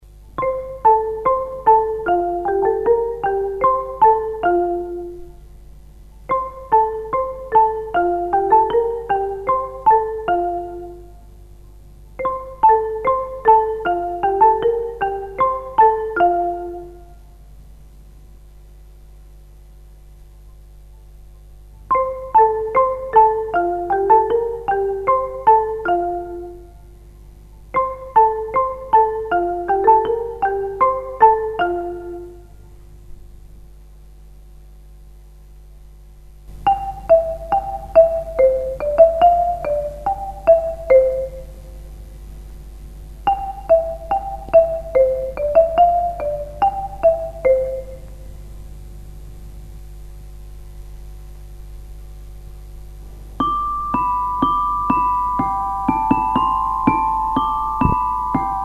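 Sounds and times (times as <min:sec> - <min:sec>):
xylophone: 0:00.4 - 0:05.2, 0:06.3 - 0:11.0, 0:12.2 - 0:17.0, 0:21.9 - 0:26.6, 0:27.8 - 0:32.4, 0:36.6 - 0:41.5, 0:43.3 - 0:48.0, 0:53.4 - 0:58.6.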